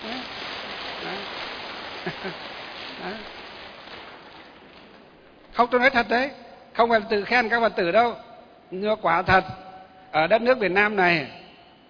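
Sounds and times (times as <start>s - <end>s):
applause: 0.0s - 5.0s
speech: 2.0s - 3.4s, 5.6s - 11.4s.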